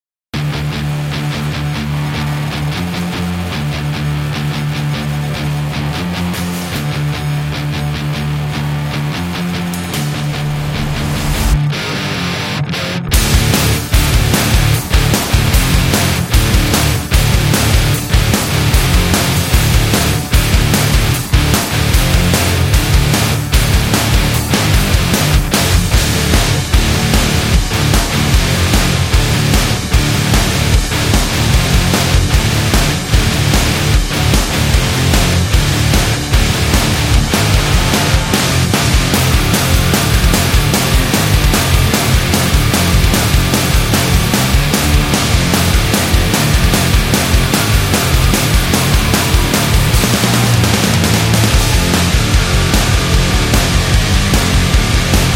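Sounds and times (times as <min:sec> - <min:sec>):
aggressive powerful hard rock music: 0:00.3 - 0:55.3.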